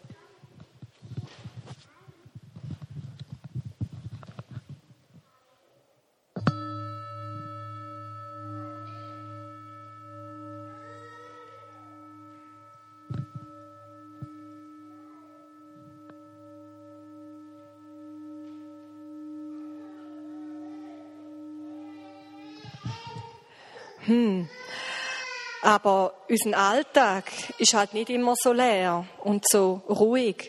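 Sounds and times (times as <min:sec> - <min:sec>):
singing bowl ringing out: 0:06.4 - 0:23.9
speech: 0:24.1 - 0:24.6, 0:25.6 - 0:30.4.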